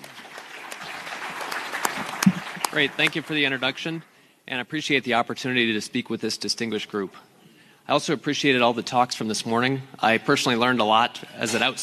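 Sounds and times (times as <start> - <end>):
audience clapping: 0.0 - 4.0
speech: 2.8 - 7.3, 7.9 - 11.8.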